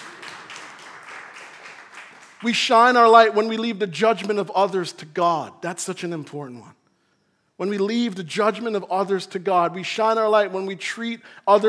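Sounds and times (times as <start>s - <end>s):
audience clapping: 0.0s - 3.4s
speech: 2.4s - 6.8s, 7.6s - 11.6s.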